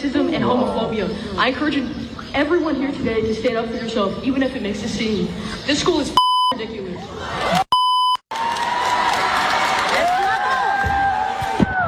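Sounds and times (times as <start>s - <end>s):
speech: 0.0s - 6.8s
brief electronic beep tone: 6.2s - 6.6s, 7.7s - 8.2s
large crowd cheering and whooping: 7.2s - 7.7s, 8.3s - 11.8s.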